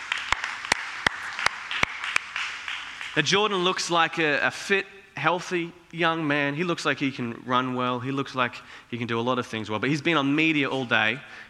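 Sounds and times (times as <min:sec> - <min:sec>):
audience applause: 0:00.0 - 0:03.4
speech: 0:03.2 - 0:11.4.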